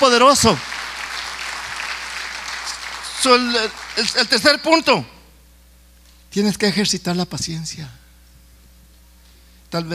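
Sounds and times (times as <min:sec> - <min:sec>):
speech: 0:00.0 - 0:00.7, 0:03.2 - 0:05.1, 0:06.3 - 0:08.0, 0:09.7 - 0:09.9
audience applause: 0:00.0 - 0:04.5.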